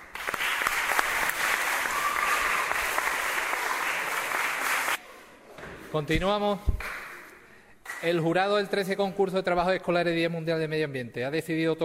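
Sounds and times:
audience applause at a school environmental-project award ceremony: 0.0s - 5.0s
speech: 5.9s - 6.9s, 8.0s - 11.8s.

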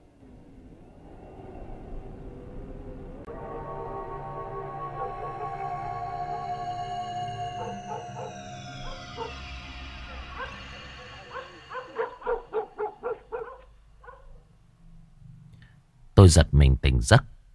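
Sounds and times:
wailing siren: 0.3s - 13.7s
dog barking next door: 7.4s - 14.4s
speech: 16.3s - 17.3s.

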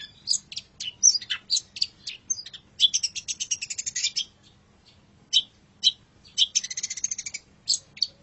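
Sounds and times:
long-tailed shrike song with chirps and rattling notes: 0.0s - 8.2s.

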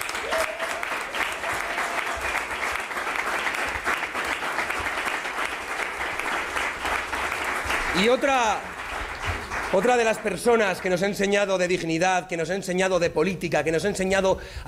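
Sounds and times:
crowd applause at a political campaign event in Aragón: 0.0s - 11.1s
speech: 8.0s - 8.7s, 9.7s - 14.6s.

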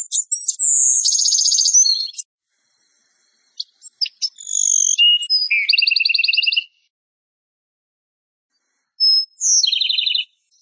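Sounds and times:
bird song with whistled tones and bouncing notes: 0.0s - 2.3s, 3.6s - 6.9s, 9.0s - 10.6s.

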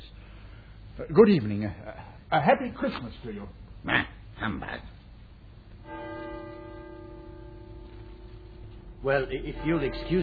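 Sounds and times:
speech: 1.0s - 4.9s, 9.0s - 10.2s
church clock striking nine: 5.8s - 10.2s.

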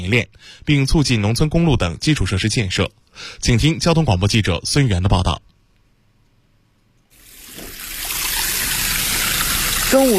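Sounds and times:
speech: 0.0s - 5.5s, 9.9s - 10.1s
clear stream gently flowing in Heishansi village, Miyun District: 7.2s - 10.1s.

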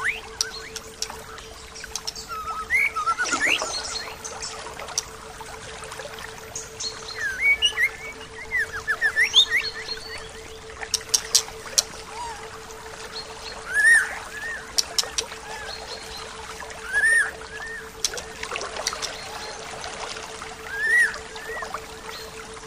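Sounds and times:
bird chirping and twittering: 0.0s - 5.1s, 6.6s - 12.4s, 13.2s - 19.6s.

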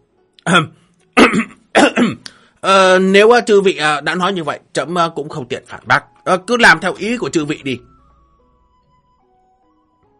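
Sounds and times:
dry coughs: 0.4s - 2.3s
throat clearing: 0.4s - 2.3s
speech: 0.5s - 7.9s.

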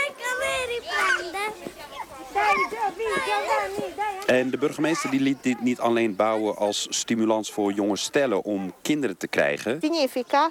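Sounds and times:
young toddlers chattering and squealing while playing outdoors on a grass field: 0.0s - 7.4s
speech: 2.9s - 10.4s.

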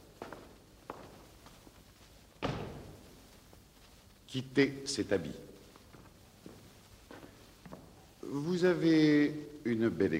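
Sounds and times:
door being closed: 2.4s - 3.0s
speech: 4.3s - 5.5s, 8.3s - 10.1s.

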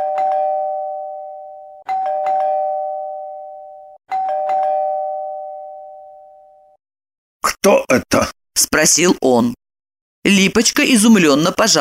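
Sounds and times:
insistent doorbell two-tone chime: 0.0s - 6.8s
speech: 7.6s - 9.6s, 10.2s - 11.8s.

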